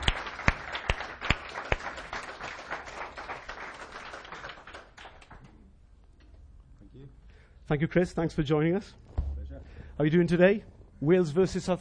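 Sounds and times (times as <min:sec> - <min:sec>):
audience applause welcoming a guest speaker: 0:00.0 - 0:05.4
speech: 0:07.7 - 0:09.1, 0:10.0 - 0:11.7.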